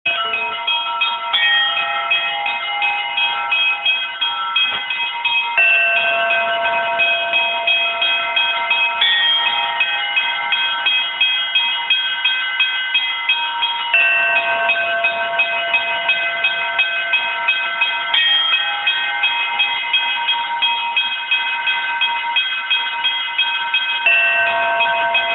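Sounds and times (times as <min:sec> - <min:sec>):
bells ringing: 0:00.0 - 0:25.3.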